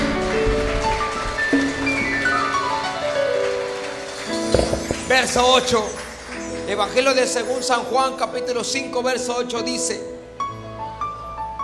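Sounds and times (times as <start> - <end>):
people clapping: 0.0 - 7.3
speech: 5.2 - 6.0, 6.7 - 10.1.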